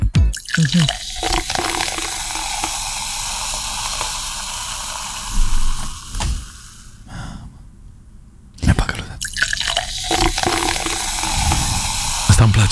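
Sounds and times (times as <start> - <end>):
fizzy juice poured into a glass: 0.4 - 7.0, 9.2 - 12.7
speech: 0.6 - 1.1.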